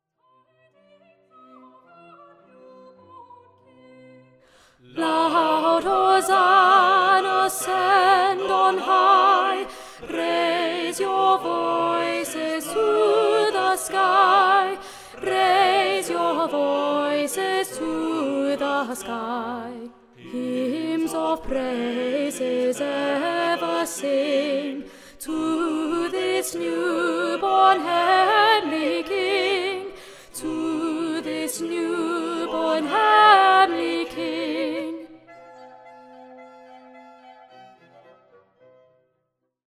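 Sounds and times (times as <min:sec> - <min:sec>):
alto voice singing a carol: 0:04.8 - 0:35.2.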